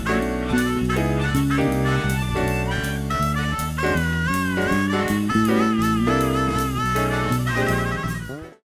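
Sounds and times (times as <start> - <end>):
harmonica solo: 0.0 - 8.6.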